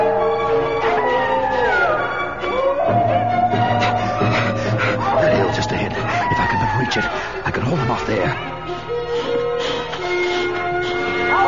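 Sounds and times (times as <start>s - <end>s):
wolf pack howling: 0.0s - 7.4s, 9.2s - 11.4s
speech: 7.0s - 9.1s.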